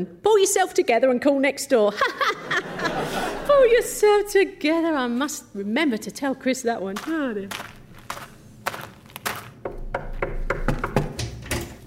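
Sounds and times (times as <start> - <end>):
speech: 0.0 - 7.7
laughter: 1.9 - 3.9
knocking at a door: 9.6 - 11.4.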